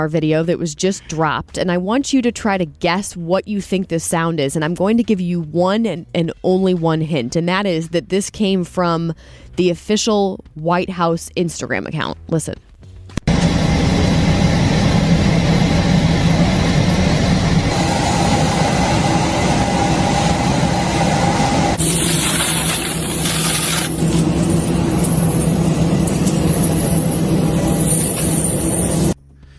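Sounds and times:
speech: 0.0 - 12.7
aircraft engine roar on deportation flight: 13.2 - 29.2
bright whine: 13.2 - 29.2.

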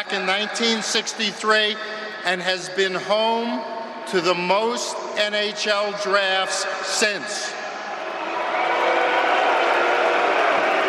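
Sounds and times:
speech: 0.0 - 7.6
crowd booing: 7.8 - 10.8.

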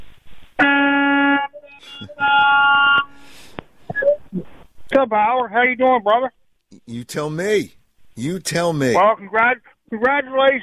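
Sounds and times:
car horn honking: 0.6 - 3.0
speech: 5.0 - 10.6.

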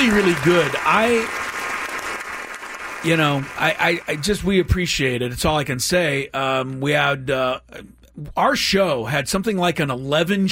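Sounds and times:
speech: 0.0 - 1.4, 3.0 - 10.5
round of applause: 0.0 - 4.8.

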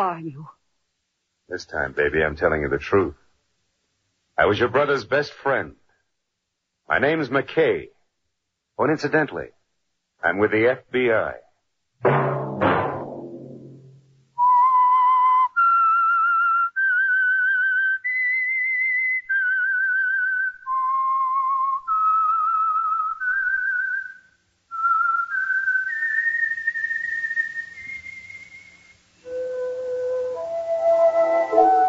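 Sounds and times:
speech: 0.1 - 0.6, 1.5 - 3.2, 4.4 - 5.8, 6.9 - 7.9, 8.8 - 9.6, 10.2 - 11.4
whistled theme melody: 14.4 - 31.8.

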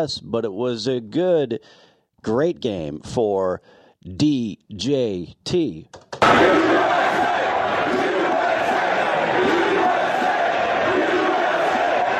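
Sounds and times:
speech: 0.0 - 7.2
stadium crowd chanting at the Jets game in Pittsburgh: 6.2 - 12.1.

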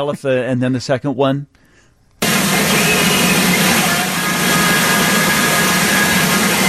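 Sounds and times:
speech: 0.0 - 1.6
radio static: 2.2 - 6.6.

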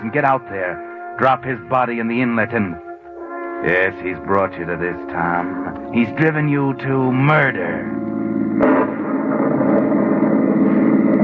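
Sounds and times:
speech: 0.0 - 2.9, 3.6 - 8.8
car engine driving fast on a stormy night: 5.1 - 11.2
sharp bang: 8.6 - 10.9.

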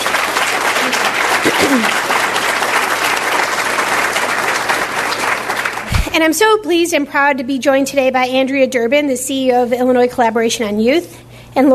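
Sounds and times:
audience applause: 0.0 - 6.1
speech: 1.6 - 2.1, 6.2 - 11.7.

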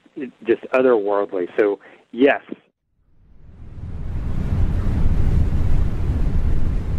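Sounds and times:
speech: 0.2 - 2.6
wind blowing: 3.1 - 6.9.

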